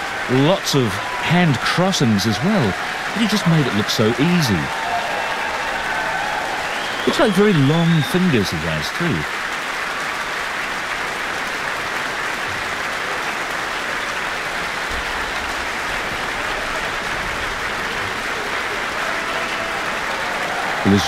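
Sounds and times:
audience and orchestra applause: 0.0 - 21.0
laughter: 0.3 - 4.8, 7.0 - 9.2, 20.8 - 21.0
speech: 0.3 - 4.8, 7.1 - 9.4.

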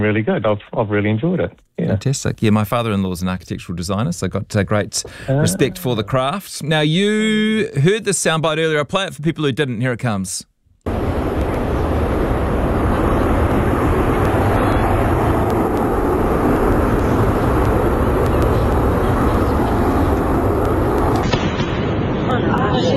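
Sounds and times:
speech: 0.0 - 11.0
Concorde breaking the sound barrier: 10.9 - 22.5.

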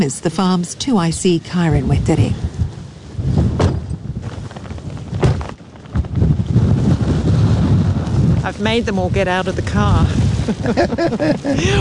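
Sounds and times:
speech: 0.0 - 2.6, 8.6 - 11.7
wind blowing on microphone: 0.4 - 11.7
laughter: 10.4 - 11.7.

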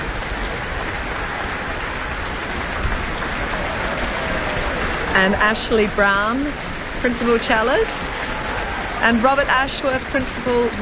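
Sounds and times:
concert audience applause: 0.0 - 10.8
speech: 5.2 - 8.3, 9.0 - 10.8.

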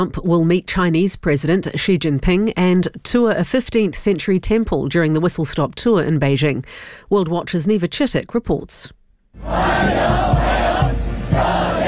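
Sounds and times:
speech: 0.0 - 11.8
crowd cheering and shouting at a formal welcome ceremony: 9.4 - 11.8.

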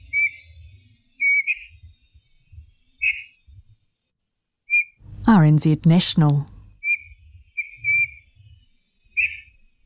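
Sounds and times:
New Zealand storm petrel high whistled chirps: 0.0 - 3.6, 4.7 - 5.0, 6.8 - 9.7
speech: 5.3 - 6.5.

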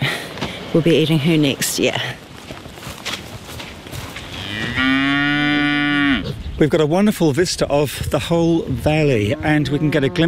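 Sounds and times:
rustling, scuffing noise: 0.3 - 5.1
speech: 0.7 - 2.2, 6.6 - 10.2
Hereford cow mooing: 4.3 - 6.4, 9.1 - 10.2.

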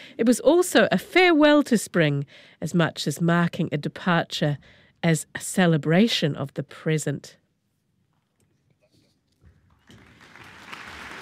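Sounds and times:
speech: 0.2 - 7.4
concert audience applause: 9.8 - 11.2.

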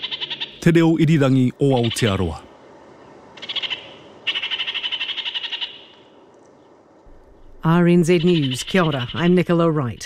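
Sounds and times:
kākāriki New Zealand parakeet calling: 0.0 - 0.7, 1.6 - 2.5, 3.1 - 6.2, 7.4 - 10.0
speech: 0.6 - 2.5, 7.6 - 10.0.

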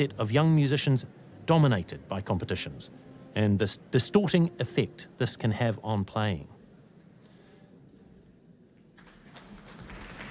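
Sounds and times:
speech: 0.0 - 6.6
audience applause: 9.0 - 10.3.

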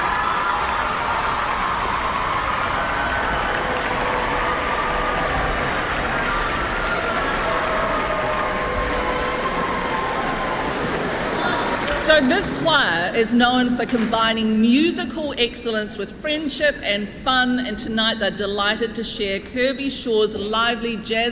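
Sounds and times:
faint cheers: 0.0 - 12.3
audience applause: 0.0 - 12.6
speech: 12.2 - 21.3.

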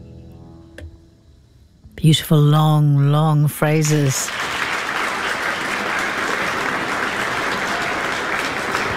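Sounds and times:
speech: 2.0 - 4.5
audience applauding after violin performance: 4.1 - 8.9.

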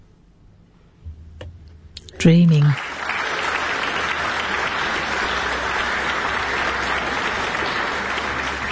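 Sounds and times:
speech: 2.2 - 3.0
applause for a New Zealand pianist: 2.2 - 8.7.

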